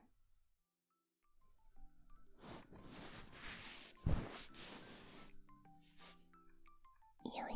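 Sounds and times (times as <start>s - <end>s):
ear cleaning scratching: 2.4s - 6.2s.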